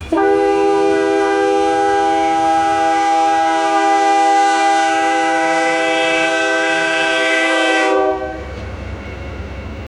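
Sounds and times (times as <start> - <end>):
train horn: 0.0 - 9.3.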